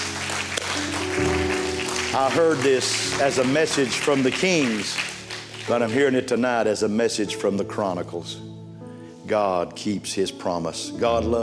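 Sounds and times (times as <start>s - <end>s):
audience clapping hands: 0.0s - 6.8s
speech: 2.1s - 8.6s, 9.3s - 11.4s.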